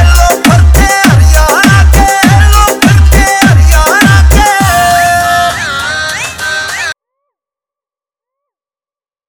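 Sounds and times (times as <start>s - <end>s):
hard bass remix: 0.0s - 7.0s.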